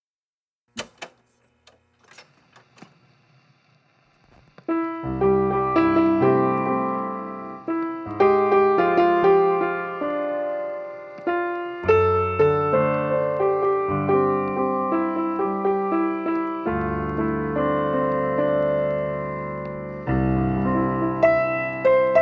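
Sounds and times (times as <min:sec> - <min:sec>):
piano piece: 0:04.7 - 0:22.2.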